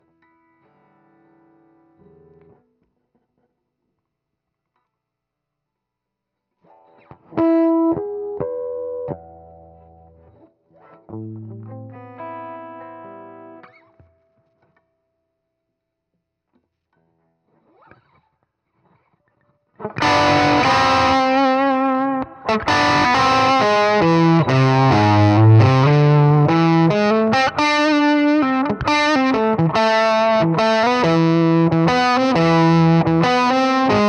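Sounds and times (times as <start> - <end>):
guitar solo: 6.7 - 14.0, 19.8 - 34.0.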